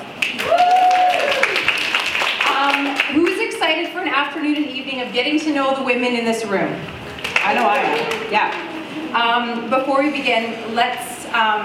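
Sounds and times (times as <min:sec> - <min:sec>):
audience applause: 0:00.2 - 0:03.4, 0:07.2 - 0:08.9
speech: 0:03.7 - 0:11.6.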